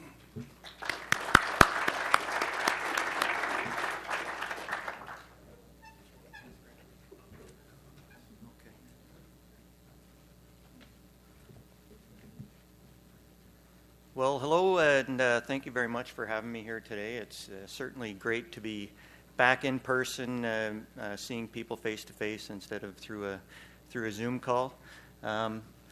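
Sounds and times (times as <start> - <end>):
quiet room noise: 0.0 - 25.9
audience applauding to welcome a speaker: 0.6 - 5.4
speech: 14.3 - 25.7.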